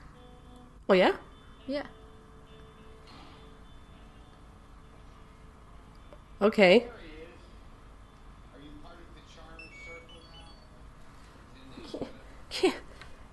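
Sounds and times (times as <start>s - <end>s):
speech: 0.9s - 2.0s, 6.4s - 7.1s, 12.6s - 12.8s
Gutatama Tamagotchi toy beeping: 9.5s - 10.7s.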